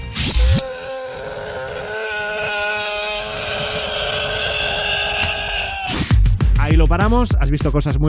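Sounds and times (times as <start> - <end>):
person moaning: 0.2 - 6.1
speech: 6.8 - 8.0.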